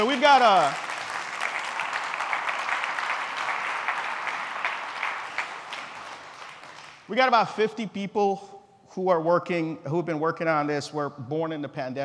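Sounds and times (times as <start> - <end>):
speech: 0.0 - 0.9, 7.1 - 12.0
audience applause: 0.0 - 7.1.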